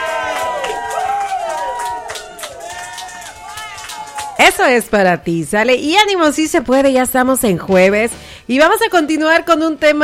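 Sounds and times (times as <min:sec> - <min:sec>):
crowd cheering and shouting: 0:00.0 - 0:04.6
scattered clapping: 0:00.0 - 0:04.8
speech: 0:04.5 - 0:10.0.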